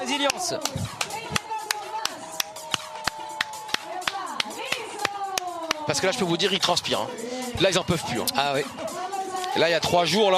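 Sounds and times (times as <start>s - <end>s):
audience rhythmic hand claps: 0.0s - 6.1s
voices talking and exclaiming: 0.0s - 10.3s
speech: 0.1s - 1.0s, 5.9s - 8.9s, 9.5s - 10.3s.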